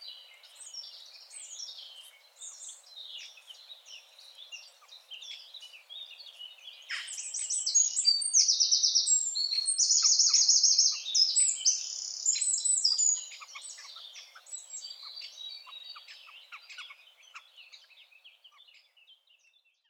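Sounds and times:
Eurasian wren Troglodytes troglodytes singing trills and twitters: 0.0 - 19.8.

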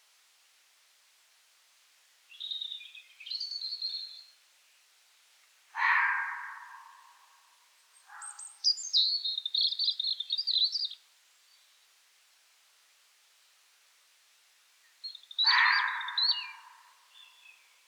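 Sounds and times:
European robin singing: 2.3 - 4.3, 8.0 - 11.6, 15.0 - 17.8.

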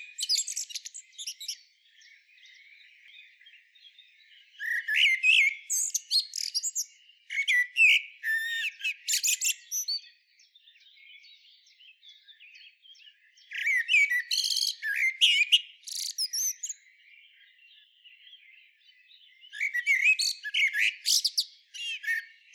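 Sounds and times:
common blackbird twittering and whistling: 0.0 - 22.5.

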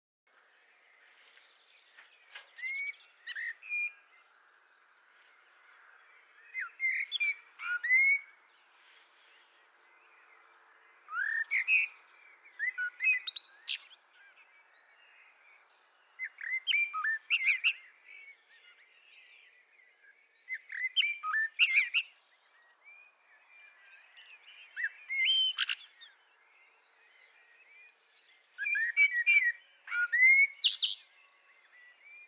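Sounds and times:
common blackbird singing: 0.5 - 32.2.

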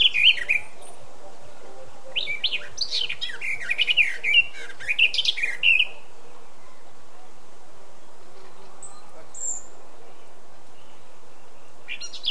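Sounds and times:
Eurasian blackcap Sylvia atricapilla singing: 0.0 - 1.0, 2.0 - 6.9, 8.8 - 12.2.

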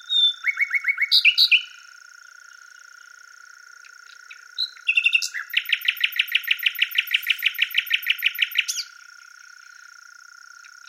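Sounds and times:
common nightingale Luscinia megarhynchos singing: 0.0 - 1.9, 3.8 - 9.9.

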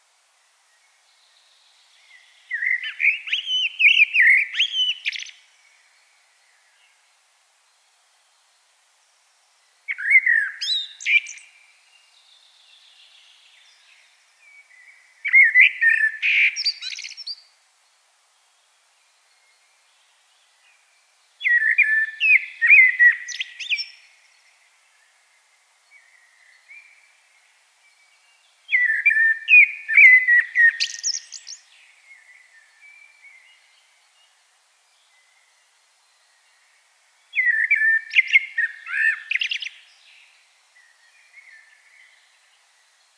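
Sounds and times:
common blackbird singing: 2.1 - 5.4, 9.9 - 11.6, 13.7 - 17.4, 21.4 - 24.1, 28.7 - 33.7, 37.3 - 40.0.

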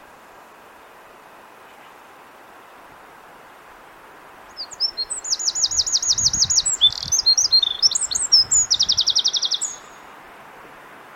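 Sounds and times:
Eurasian wren singing: 4.5 - 10.1.

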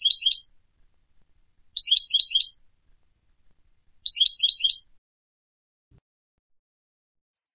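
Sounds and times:
European goldfinch Carduelis carduelis twittering: 0.0 - 0.5, 1.8 - 2.6, 4.0 - 4.8.

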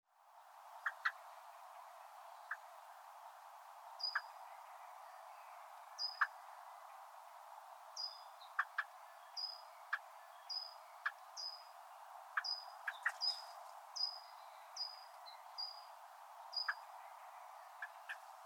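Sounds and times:
common blackbird Turdus merula giving thin high slightly falling calls: 0.8 - 1.4, 4.0 - 6.5, 7.9 - 18.4.

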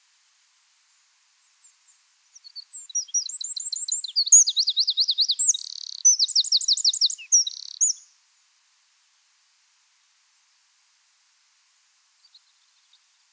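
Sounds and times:
Eurasian wren trilling song: 2.4 - 8.1.

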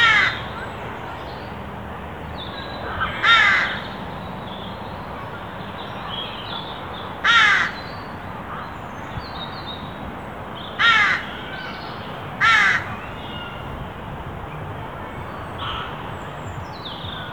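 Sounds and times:
carrion crow cawing: 0.0 - 0.6, 2.9 - 3.9, 7.2 - 7.8, 10.8 - 11.7, 12.4 - 13.0.

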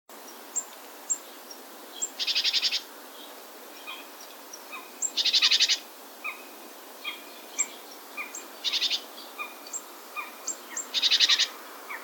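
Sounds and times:
great tit harsh rattling churrs: 2.2 - 2.9, 4.6 - 6.4, 7.0 - 12.0.

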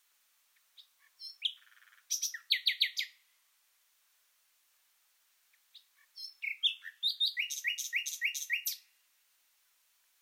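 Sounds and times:
common nightingale song: 0.5 - 3.2, 5.5 - 9.0.

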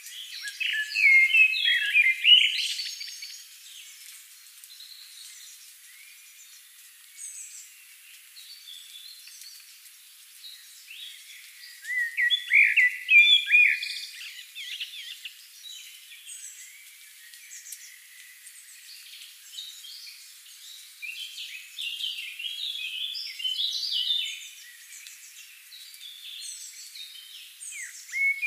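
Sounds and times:
Common blackbird Turdus merula uttering scratchy twittering high notes and rising whistles: 0.0 - 3.9, 10.5 - 28.4.

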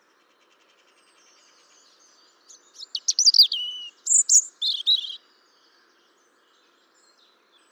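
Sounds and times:
European robin song: 2.5 - 5.2.

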